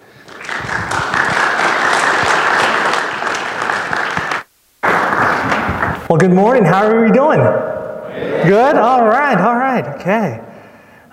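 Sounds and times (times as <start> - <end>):
audience applause: 0.0 - 6.0
speech: 6.1 - 7.7, 8.4 - 10.4.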